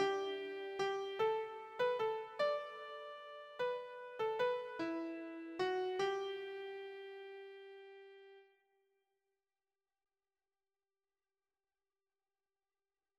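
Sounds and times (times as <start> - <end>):
keyboard melody: 0.0 - 8.4.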